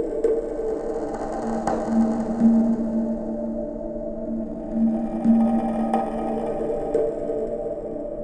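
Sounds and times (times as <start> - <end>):
ethnic percussion effects: 0.2 - 8.1.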